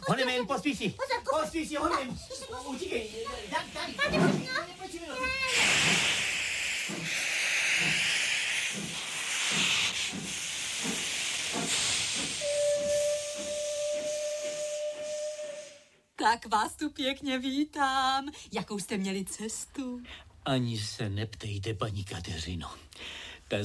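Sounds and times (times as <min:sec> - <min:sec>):
speech: 0:00.1 - 0:06.3, 0:06.9 - 0:08.1, 0:16.2 - 0:23.6
steam locomotive hissing: 0:01.0 - 0:16.0
steady whistle tone: 0:06.6 - 0:16.0.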